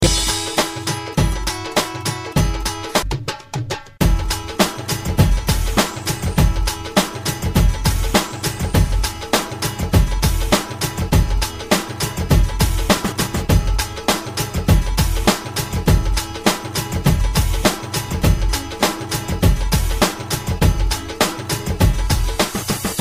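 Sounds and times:
reggae music: 0.0 - 22.9.

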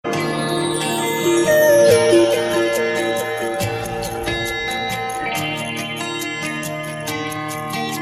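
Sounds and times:
flute music: 0.2 - 7.0.

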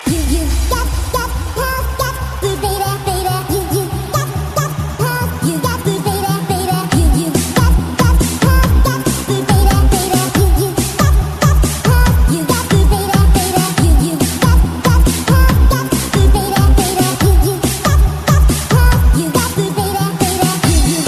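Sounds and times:
house music: 0.0 - 21.0.

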